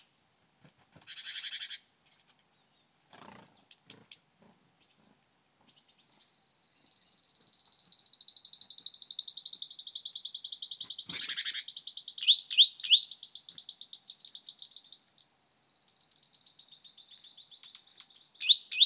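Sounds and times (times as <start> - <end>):
great tit Parus major giving ringing notes: 5.2 - 18.8.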